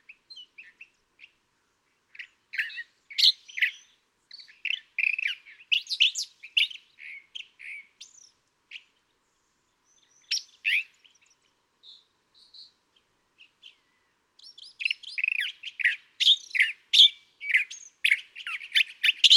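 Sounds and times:
California thrasher singing varied raspy and chattering phrases: 2.2 - 8.3, 14.5 - 19.3.

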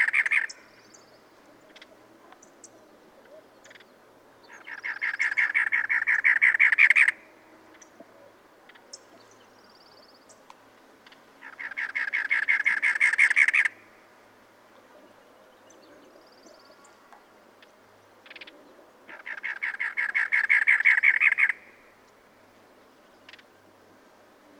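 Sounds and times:
cactus wren calling: 0.0 - 10.4, 11.0 - 14.1, 17.6 - 22.0, 23.0 - 23.6.

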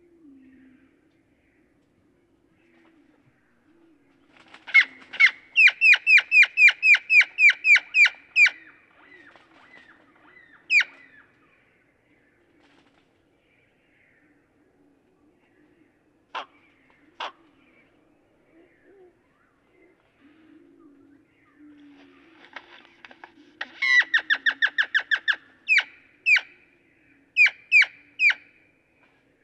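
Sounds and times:
Great-tailed grackle sharp calls: 3.8 - 11.7, 15.7 - 28.7.

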